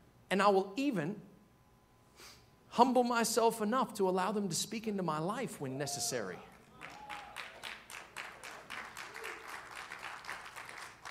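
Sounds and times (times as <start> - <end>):
speech: 0.3 - 1.3, 2.2 - 6.5
audience clapping: 6.3 - 11.0.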